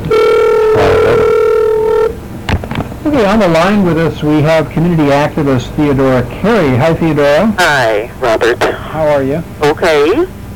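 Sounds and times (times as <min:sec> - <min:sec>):
telephone ringing for a radio call-in line: 0:00.1 - 0:02.2
speech: 0:03.2 - 0:10.4.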